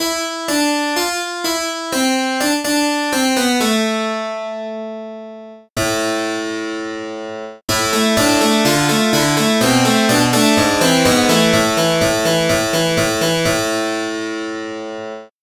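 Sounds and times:
harpsichord: 0.0 - 15.3.

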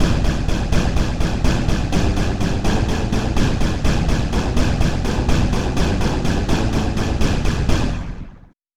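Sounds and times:
orchestra hit bass: 0.0 - 8.2.

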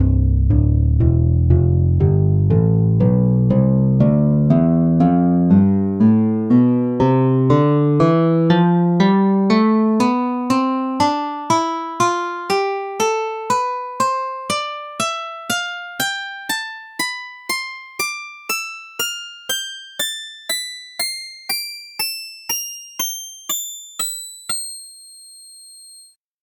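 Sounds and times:
nylon string guitar playing a scale: 0.0 - 26.1.

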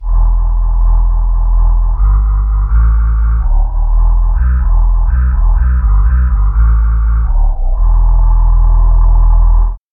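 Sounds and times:
solo bass voice: 0.0 - 9.9.

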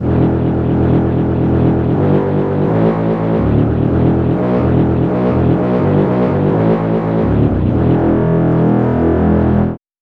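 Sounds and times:
brass section bass: 0.0 - 9.8.

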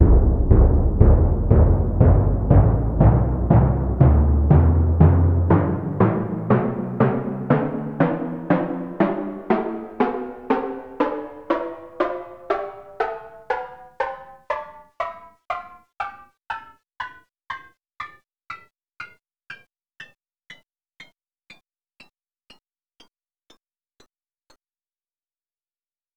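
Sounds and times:
timpani playing a scale: 0.0 - 15.2.

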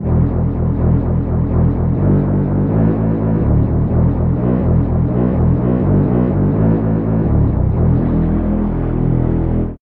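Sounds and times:
french horns playing bass: 0.0 - 9.8.

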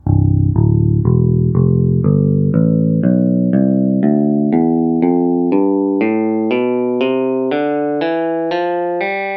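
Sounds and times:
clean guitar scale: 0.0 - 9.2.

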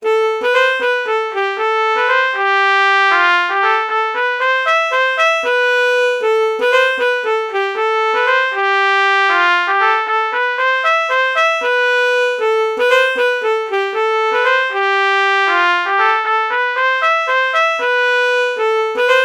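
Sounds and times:
alto saxophone and trumpet melody morph: 0.0 - 19.2.

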